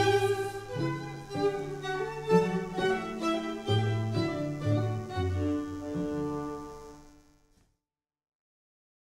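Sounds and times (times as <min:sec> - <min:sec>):
string quartet playing: 0:00.0 - 0:06.5.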